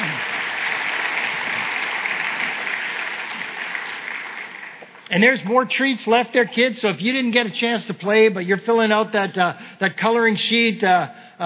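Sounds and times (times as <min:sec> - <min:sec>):
audience applauding children at a kids' event: 0:00.0 - 0:05.2
speech: 0:05.1 - 0:11.4.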